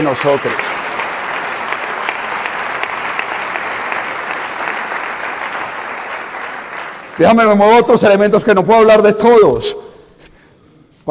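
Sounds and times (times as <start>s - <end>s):
speech: 0.0s - 0.8s, 7.2s - 9.8s
audience applause: 0.0s - 7.5s.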